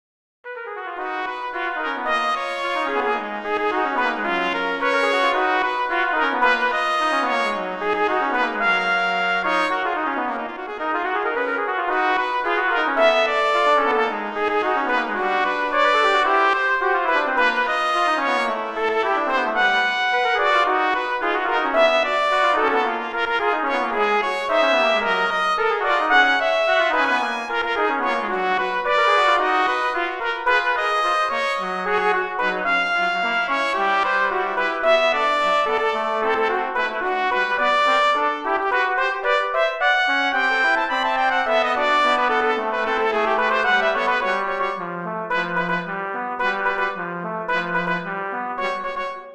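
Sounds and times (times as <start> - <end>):
three trumpets playing: 0.8 - 49.3.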